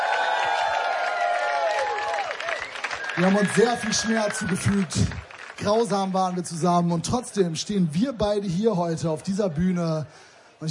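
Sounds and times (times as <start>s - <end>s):
crowd cheering with whoops and shouted voices: 0.0s - 5.3s
crowd applauding: 0.0s - 7.5s
speech: 3.2s - 10.6s.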